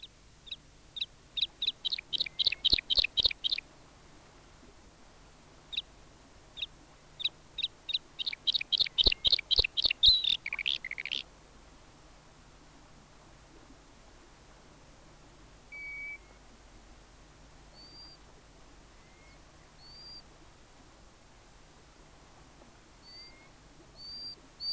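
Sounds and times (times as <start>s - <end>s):
bluethroat singing: 0.4s - 3.6s, 6.6s - 11.3s.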